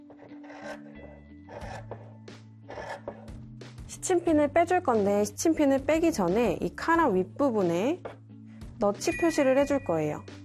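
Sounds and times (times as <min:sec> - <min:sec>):
scissors cutting two layers of fabric: 0:00.0 - 0:02.1, 0:02.7 - 0:03.3
speech: 0:03.9 - 0:08.2, 0:08.8 - 0:10.4.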